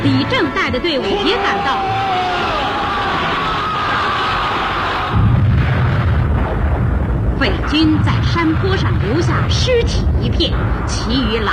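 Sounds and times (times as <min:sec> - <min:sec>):
speech: 0:00.1 - 0:02.5, 0:07.4 - 0:11.5
battle explosions: 0:03.7 - 0:11.5
guerrilla gunfire against enemy troops: 0:05.1 - 0:11.3.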